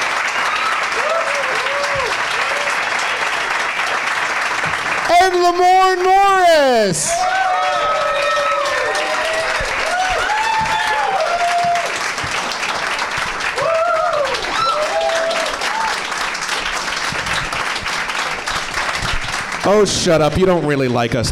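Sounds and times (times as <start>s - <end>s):
crowd whooping and cheering: 0.0s - 3.7s, 4.6s - 12.6s, 13.4s - 16.3s
audience applause: 0.0s - 21.3s
speech: 5.2s - 7.5s, 19.7s - 21.3s.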